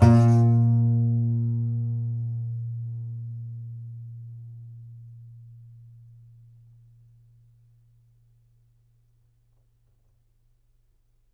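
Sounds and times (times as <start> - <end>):
contrabass balalaika plucked strings: 0.0 - 6.5.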